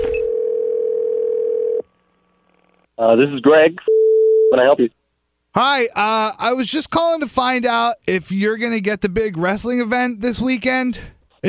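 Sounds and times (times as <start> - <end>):
telephone dial tone before a prank call: 0.2 - 1.8
speech: 3.0 - 3.9, 4.5 - 11.4.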